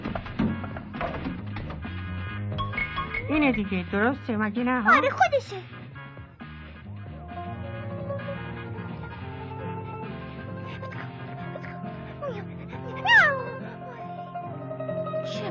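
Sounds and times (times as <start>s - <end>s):
music or tones: 0.0s - 15.4s
speech: 3.3s - 5.8s
cat meowing: 4.9s - 5.3s, 12.2s - 14.1s.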